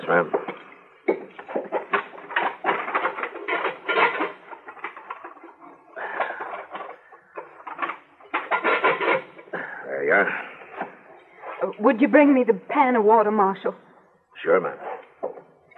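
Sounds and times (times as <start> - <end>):
speech: 0.1 - 0.4, 11.8 - 13.8, 14.4 - 14.8
sticks of wood fed into a stove: 0.3 - 9.7.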